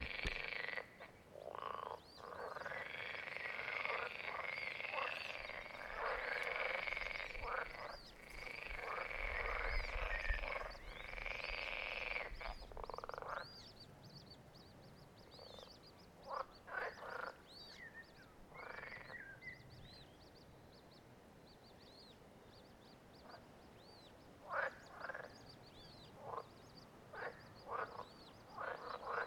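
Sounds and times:
frogs croaking: 0:00.0 - 0:13.8, 0:15.2 - 0:17.9, 0:18.5 - 0:19.4, 0:24.4 - 0:29.2.

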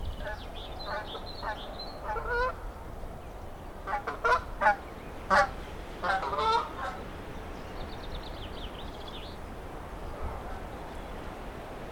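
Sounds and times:
steady background hiss: 0:00.0 - 0:11.9
Canada geese honking: 0:00.2 - 0:02.6, 0:03.9 - 0:07.0.

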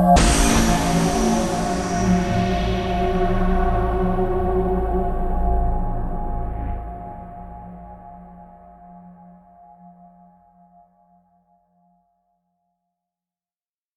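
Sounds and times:
haunted synth trailer hit: 0:00.2 - 0:08.7.

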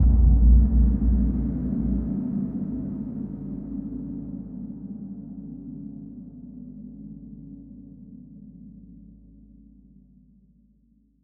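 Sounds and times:
dark hit: 0:00.0 - 0:04.1.

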